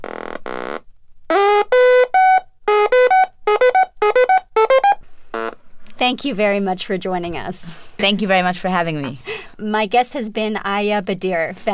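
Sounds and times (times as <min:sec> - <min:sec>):
harsh buzzy tones: 0:00.0 - 0:05.6
electronic sequencer pattern of bright synth beeps stepping upward: 0:01.4 - 0:05.0
speech: 0:06.1 - 0:11.7.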